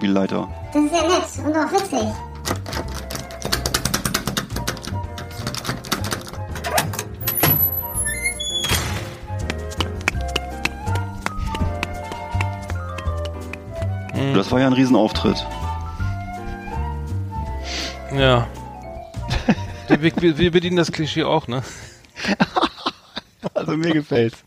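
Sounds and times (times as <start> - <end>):
speech: 0.0 - 2.6, 14.3 - 15.6, 18.2 - 18.6, 19.5 - 22.4, 23.7 - 24.4
busy musical backing: 0.0 - 23.1
comic clip-clop hoofbeats: 9.3 - 13.9
laughter: 19.3 - 20.4, 22.2 - 23.9.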